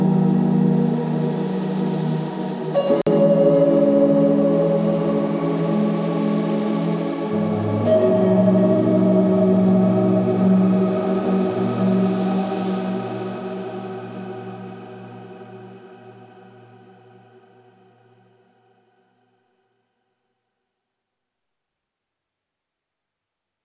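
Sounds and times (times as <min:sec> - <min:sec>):
celestial ambience: 0:00.0 - 0:16.4.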